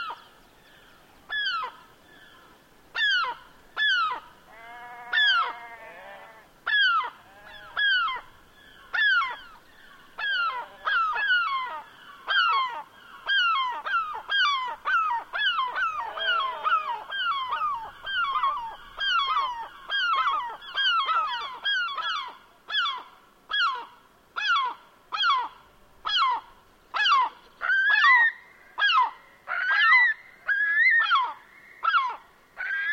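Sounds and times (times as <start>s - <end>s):
seabirds calling on moorland at Arisaig: 0.0s - 32.9s
sheep calling on moorland at Arisaig: 4.5s - 6.5s, 7.2s - 8.0s, 15.8s - 18.4s.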